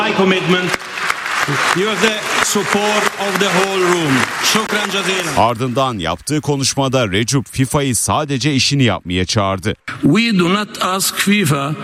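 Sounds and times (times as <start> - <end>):
speech: 0.1 - 11.8
applause in a hall: 0.4 - 6.0.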